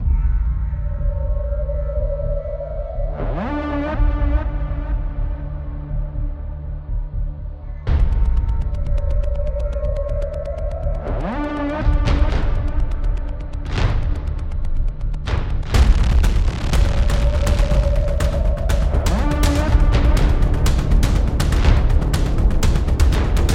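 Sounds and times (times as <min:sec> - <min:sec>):
suspense music: 0:00.0 - 0:23.5.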